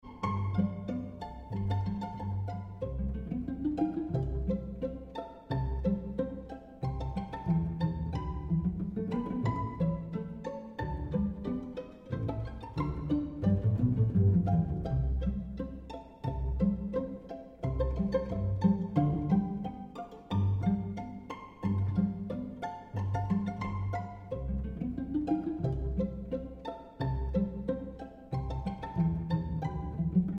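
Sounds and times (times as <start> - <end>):
pizzicato strings: 0.0 - 30.3.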